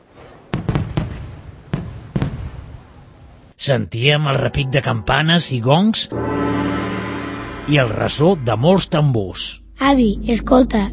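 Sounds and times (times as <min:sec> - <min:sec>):
fireworks going off in the street: 0:00.0 - 0:03.4
speech: 0:03.6 - 0:06.4, 0:07.7 - 0:10.9.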